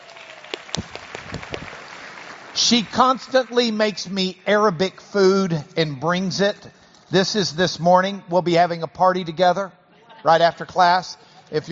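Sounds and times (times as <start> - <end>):
audience applause: 0.0 - 3.8
speech: 2.7 - 11.6.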